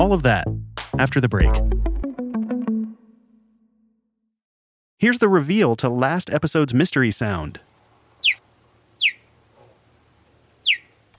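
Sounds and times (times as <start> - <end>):
speech: 0.0 - 1.8, 5.0 - 7.7
cheetah chirping: 7.6 - 11.1.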